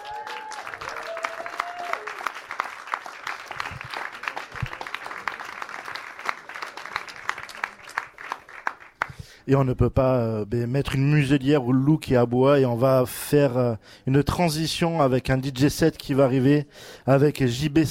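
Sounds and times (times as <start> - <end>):
audience applause for speakers: 0.0 - 9.2
speech: 9.5 - 17.8.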